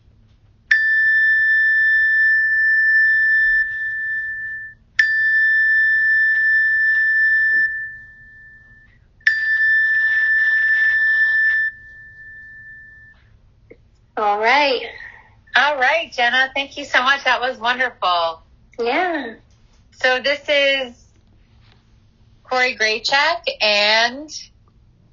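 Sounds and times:
faint low hum: 0.0s - 25.1s
meditation bell ringing: 0.7s - 13.4s
speech: 14.2s - 15.0s, 15.6s - 19.4s, 20.0s - 21.0s, 22.5s - 24.5s.

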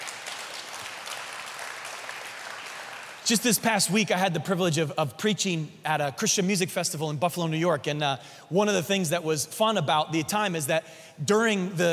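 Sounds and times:
audience clapping: 0.0s - 3.8s
speech: 3.3s - 11.9s.

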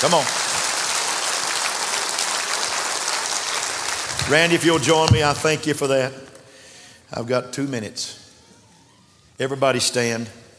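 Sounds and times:
speech: 0.0s - 0.4s, 4.3s - 6.3s, 7.1s - 8.2s, 9.4s - 10.4s
audience clapping hands over heads: 0.0s - 5.5s.

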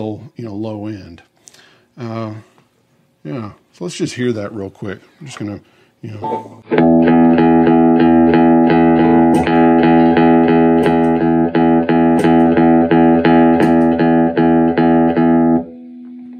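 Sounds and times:
speech: 0.0s - 1.3s, 2.0s - 2.5s, 3.2s - 8.1s
electric guitar chords through vintage compressor pedal: 6.2s - 16.3s.

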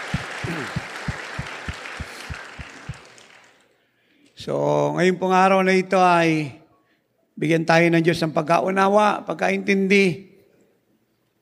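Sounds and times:
church congregation clapping hands in a steady rhythm: 0.0s - 3.8s
continuous wash of noise: 0.0s - 11.4s
speech: 4.4s - 6.6s, 7.4s - 10.3s.

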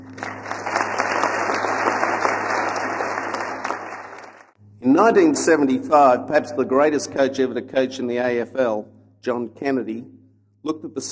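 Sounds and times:
audience applause at a school assembly: 0.0s - 4.6s
speech: 4.8s - 11.0s.

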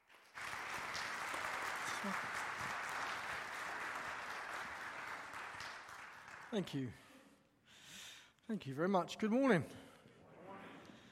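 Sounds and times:
church audience clapping to welcome a guest speaker: 0.0s - 7.1s
speech: 2.0s - 2.4s, 6.5s - 7.0s, 8.5s - 9.8s.

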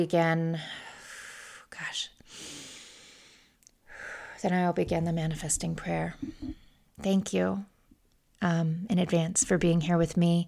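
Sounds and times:
speech: 0.0s - 0.8s, 1.7s - 2.6s, 4.4s - 7.7s, 8.4s - 10.4s
deep breathing from a guide opening a manifesting prayer: 2.3s - 6.9s.

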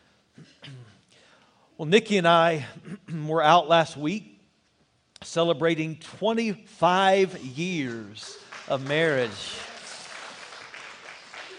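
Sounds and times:
speech: 1.8s - 4.3s, 5.2s - 9.7s
audience clapping: 7.2s - 11.5s.

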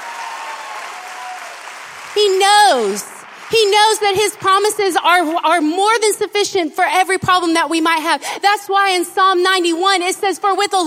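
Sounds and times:
audience clapping: 0.0s - 5.4s
speech: 2.1s - 10.8s.

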